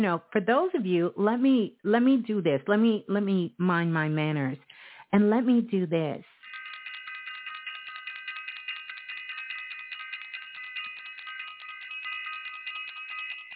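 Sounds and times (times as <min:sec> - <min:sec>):
speech: 0:00.0 - 0:06.4
bell being rung: 0:06.4 - 0:13.5.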